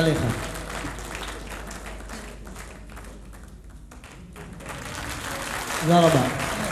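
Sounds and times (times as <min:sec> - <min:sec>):
speech: 0:00.0 - 0:00.5, 0:05.8 - 0:06.4
audience applause: 0:00.0 - 0:06.6
murmur of voices: 0:01.3 - 0:06.6.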